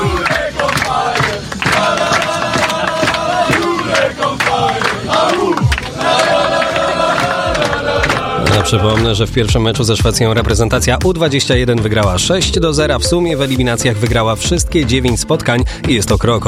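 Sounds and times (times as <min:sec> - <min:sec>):
percussive claps or beats: 0:00.0 - 0:09.2
footballers chanting in celebration of a victory: 0:00.0 - 0:09.9
crowd noise: 0:00.0 - 0:12.4
speech: 0:08.7 - 0:16.4.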